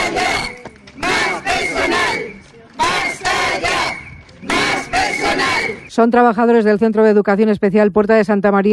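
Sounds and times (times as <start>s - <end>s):
protesters chanting at a rally: 0.0s - 5.9s
speech: 6.0s - 8.7s.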